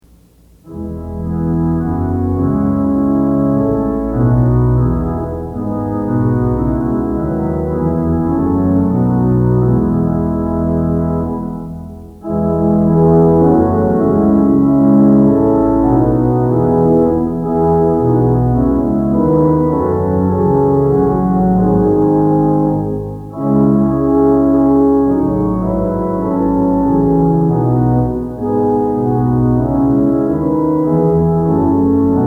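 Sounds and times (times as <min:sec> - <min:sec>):
organ music for worship services: 0:00.6 - 0:32.2.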